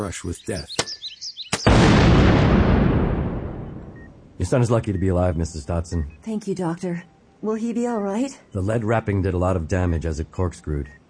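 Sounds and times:
speech: 0:00.0 - 0:01.0, 0:04.4 - 0:11.0
firecracker torpedo blast struck with a garden rake: 0:01.6 - 0:04.0.

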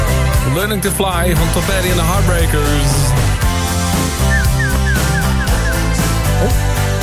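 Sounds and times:
speech: 0:00.5 - 0:03.2, 0:06.4 - 0:06.6
cockatoo call: 0:04.0 - 0:06.7.

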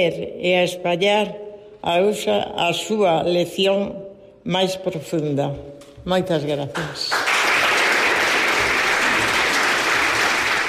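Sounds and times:
speech: 0:00.0 - 0:07.4
long applause from a hall audience: 0:07.1 - 0:10.6.

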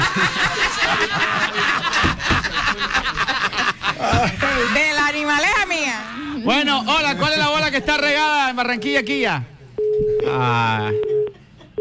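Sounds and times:
laughter: 0:00.0 - 0:08.5
speech: 0:00.2 - 0:00.5, 0:07.9 - 0:09.6, 0:10.2 - 0:11.1
telephone line busy tone from a dropped call: 0:09.8 - 0:11.8.

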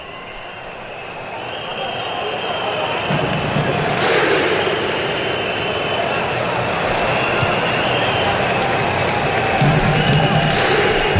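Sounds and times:
Moroccan football fans roaring and chanting in stadium: 0:00.0 - 0:11.1.

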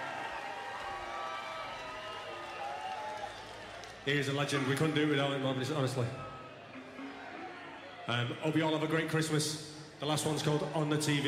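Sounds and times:
concert crowd cheering and whooping: 0:00.0 - 0:04.0, 0:06.6 - 0:08.2
speech: 0:04.0 - 0:06.3, 0:08.1 - 0:11.2.

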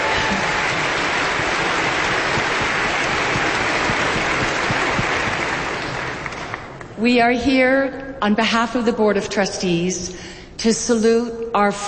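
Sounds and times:
crowd applauding: 0:00.0 - 0:07.0
speech: 0:07.0 - 0:11.8.

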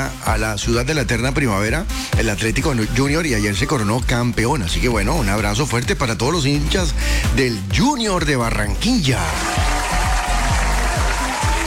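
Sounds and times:
speech: 0:00.0 - 0:09.7
applause: 0:09.1 - 0:11.6.

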